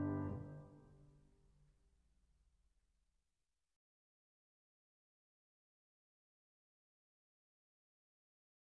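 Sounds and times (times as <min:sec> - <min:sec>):
piano accompaniment: 0:00.0 - 0:00.8.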